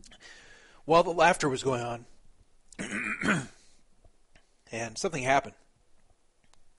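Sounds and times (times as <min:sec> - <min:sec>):
speech: 0:00.8 - 0:02.1, 0:02.8 - 0:03.5, 0:04.7 - 0:05.6
choking cough after water went down wrong: 0:02.8 - 0:03.6.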